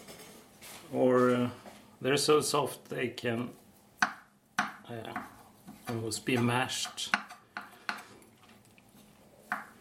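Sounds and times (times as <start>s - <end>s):
speech: 0.9s - 3.6s, 4.9s - 7.2s
knife chopping soft ingredients for Yule bread on a board: 4.0s - 8.0s.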